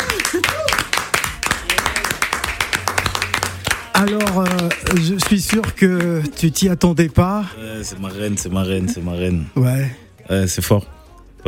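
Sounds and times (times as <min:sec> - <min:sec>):
audience clapping: 0:00.0 - 0:06.4
speech: 0:04.0 - 0:11.4.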